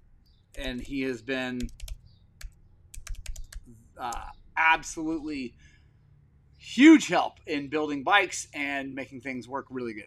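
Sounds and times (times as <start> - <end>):
typing on a computer keyboard: 0.5 - 4.4
speech: 0.6 - 1.8, 3.7 - 5.7, 6.6 - 10.0.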